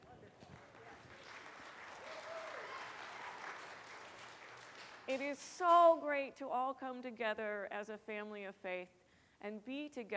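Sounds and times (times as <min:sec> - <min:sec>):
audience clapping: 0:00.0 - 0:05.8
speech: 0:05.1 - 0:10.1.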